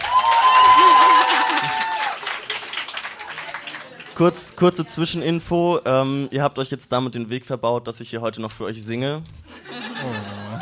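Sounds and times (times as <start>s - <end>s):
audience applause: 0.0s - 4.6s
speech: 4.2s - 10.3s
laughter: 9.5s - 10.6s.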